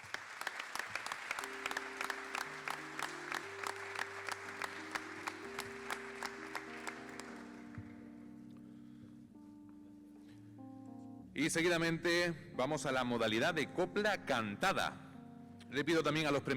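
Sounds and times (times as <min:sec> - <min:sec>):
audience applause at award ceremony: 0:00.0 - 0:08.0
speech: 0:11.4 - 0:15.0, 0:15.7 - 0:16.5.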